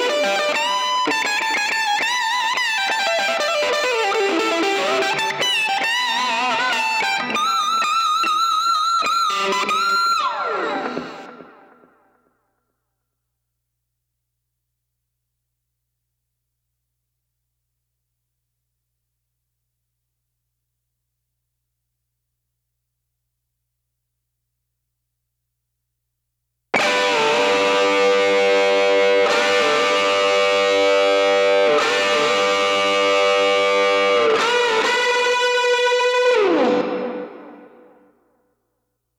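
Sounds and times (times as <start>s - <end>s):
lead guitar: 0.0s - 12.3s, 26.8s - 38.1s.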